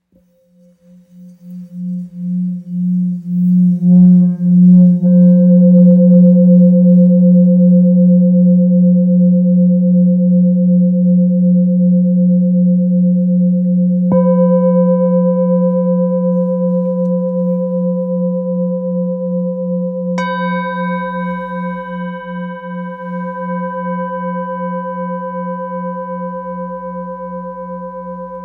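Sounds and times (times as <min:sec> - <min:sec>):
Tibetan singing bowl tuned to F: 0:00.0 - 0:28.4.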